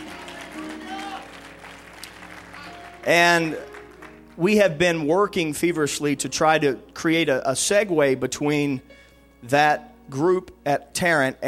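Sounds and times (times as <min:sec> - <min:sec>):
crowd clapping: 0:00.0 - 0:04.7
speech: 0:03.1 - 0:03.7, 0:04.4 - 0:11.4.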